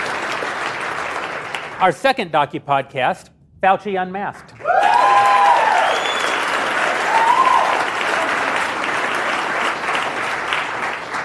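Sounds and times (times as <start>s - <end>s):
audience clapping: 0.0s - 2.1s, 4.3s - 11.2s
speech: 1.8s - 5.0s.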